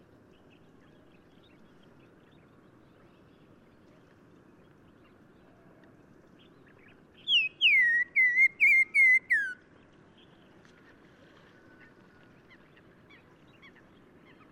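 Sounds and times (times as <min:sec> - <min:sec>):
black-crowned tchagra whistled song in Morocco: 0:07.3 - 0:09.6.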